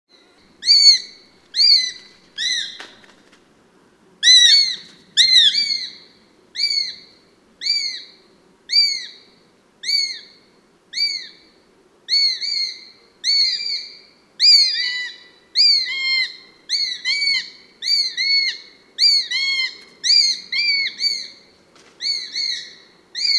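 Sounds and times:
sparrowhawk calling: 0.6s - 2.9s, 4.2s - 11.5s, 12.1s - 23.3s.

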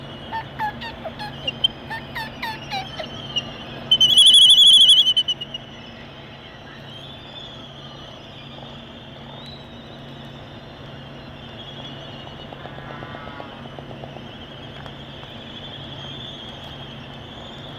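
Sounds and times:
dark-backed albatross calling: 0.3s - 5.6s.

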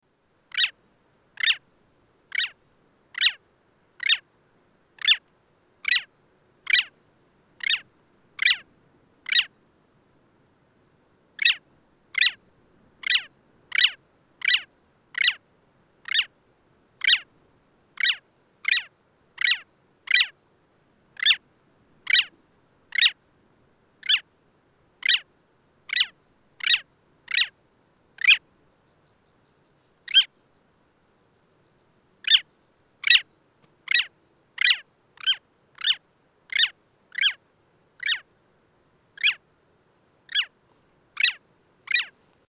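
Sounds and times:
long-tailed skua calling: 0.5s - 0.8s, 1.4s - 1.6s, 2.3s - 2.6s, 3.2s - 3.4s, 4.0s - 4.2s, 5.0s - 5.2s, 5.8s - 6.1s, 6.7s - 6.9s, 7.6s - 8.7s, 9.3s - 9.5s, 11.4s - 11.6s, 12.2s - 12.4s, 13.0s - 15.4s, 16.0s - 16.3s, 17.0s - 17.3s, 18.0s - 20.3s, 21.2s - 21.4s, 22.1s - 22.3s, 22.9s - 23.2s, 25.0s - 25.3s, 25.9s - 27.6s, 28.2s - 29.2s, 30.0s - 30.4s, 32.2s - 33.3s, 33.9s - 37.4s, 38.0s - 38.2s, 39.2s - 39.4s, 40.3s - 40.5s, 41.2s - 42.1s.

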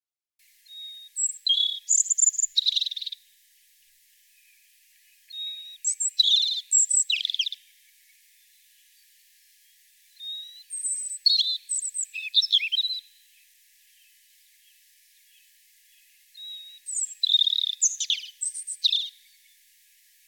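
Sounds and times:
European robin calling: 0.7s - 3.2s, 5.2s - 7.7s, 10.2s - 13.2s, 16.3s - 19.5s.

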